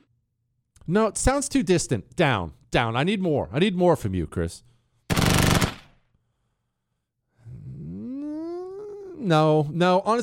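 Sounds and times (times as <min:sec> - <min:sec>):
speech: 0:00.9 - 0:04.7, 0:09.3 - 0:10.2
machine gun burst: 0:05.1 - 0:06.0.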